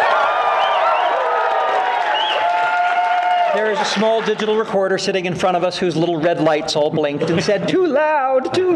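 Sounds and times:
live studio audience cheering and applauding: 0.0 - 5.1
speech: 3.6 - 8.7.

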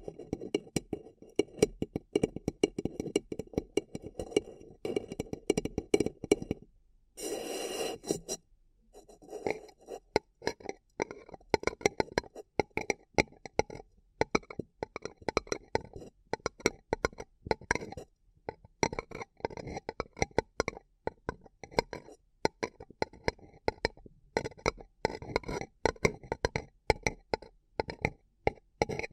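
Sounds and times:
tapping and crinkling on a paper cup: 0.0 - 6.7, 9.2 - 29.1
rough scraping: 7.2 - 8.4.

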